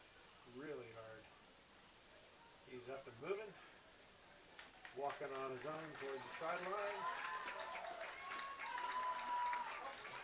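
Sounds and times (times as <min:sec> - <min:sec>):
speech: 0:00.5 - 0:01.5, 0:02.6 - 0:03.8, 0:04.9 - 0:07.6
fans applauding in stadium: 0:04.6 - 0:10.2.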